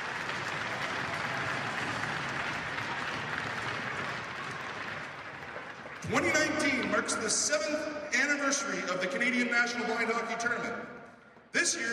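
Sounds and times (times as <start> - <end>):
round of applause: 0.0 - 7.2
speech: 6.1 - 11.0, 11.6 - 11.9.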